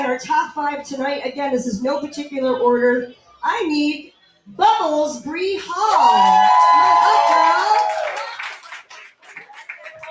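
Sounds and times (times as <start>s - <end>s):
speech: 0.2s - 8.2s
faint voices and whoops: 5.9s - 8.6s
crowd applauding: 6.0s - 10.0s.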